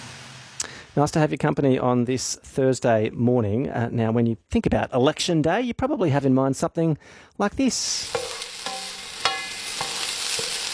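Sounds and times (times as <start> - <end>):
democracy sausage sizzling on a barbecue: 0.0 - 1.0, 7.8 - 10.7
speech: 1.0 - 8.2.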